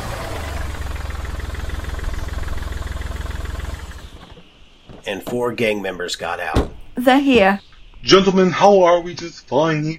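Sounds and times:
car engine idling: 0.0 - 4.6
car pulling up: 0.0 - 7.0
speech: 5.1 - 9.9.

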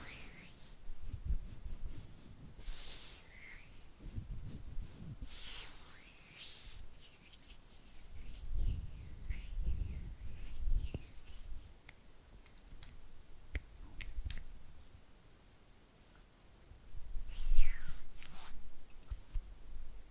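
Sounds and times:
oily hands rubbing: 0.0 - 11.9, 17.2 - 19.4.

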